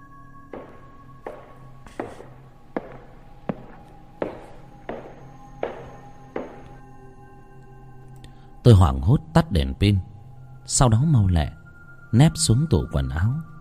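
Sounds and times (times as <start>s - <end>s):
footsteps approaching: 0.5s - 6.8s
speech: 8.7s - 10.1s, 10.7s - 13.5s.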